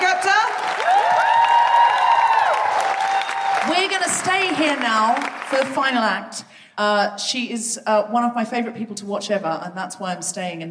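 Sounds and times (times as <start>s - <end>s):
audience round of applause: 0.0s - 5.8s
speech: 4.2s - 10.6s.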